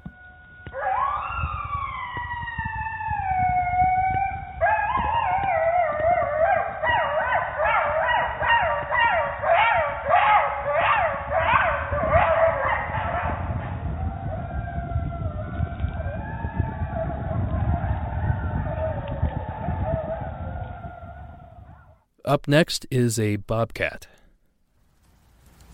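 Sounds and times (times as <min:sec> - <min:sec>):
pack of coyotes howling: 0:00.0 - 0:22.0
speech: 0:22.4 - 0:24.2.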